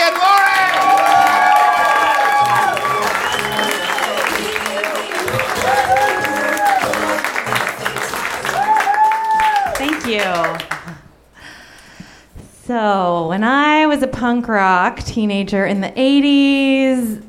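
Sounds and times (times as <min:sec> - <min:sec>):
audience applause and cheering: 0:00.0 - 0:11.0
speech: 0:12.7 - 0:17.2.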